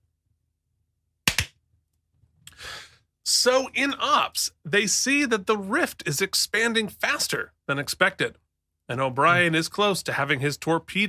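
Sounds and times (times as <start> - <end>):
single hand clap: 1.3 - 1.5
speech: 3.4 - 11.0.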